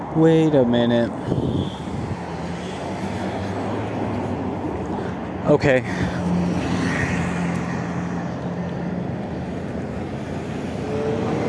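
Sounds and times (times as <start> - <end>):
street traffic with many passing cars: 0.0 - 11.4
speech: 0.2 - 1.6, 5.5 - 6.4.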